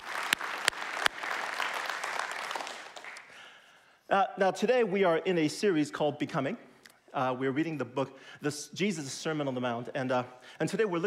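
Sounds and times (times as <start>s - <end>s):
audience applause: 0.0s - 3.4s
speech: 4.1s - 11.0s.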